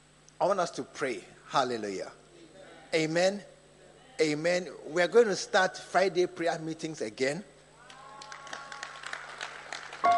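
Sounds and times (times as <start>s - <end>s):
speech: 0.4s - 2.2s, 2.9s - 3.5s, 4.2s - 7.5s
audience clapping: 7.8s - 10.1s.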